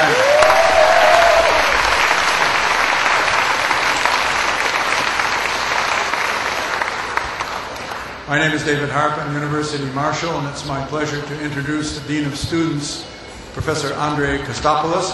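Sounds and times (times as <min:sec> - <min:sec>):
audience applause: 0:00.0 - 0:08.3
speech: 0:08.3 - 0:15.1.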